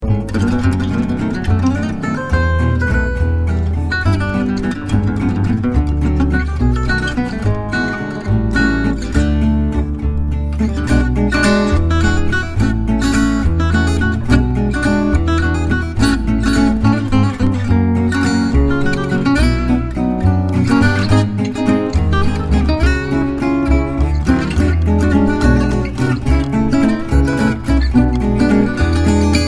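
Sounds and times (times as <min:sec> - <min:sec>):
musette guitars: 0:00.0 - 0:29.4.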